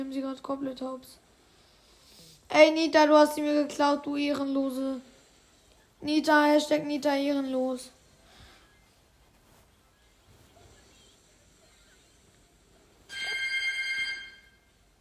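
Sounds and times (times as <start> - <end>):
speech: 0.0 - 1.3, 2.5 - 5.1, 6.0 - 8.0
doorbell ringing: 13.1 - 14.8.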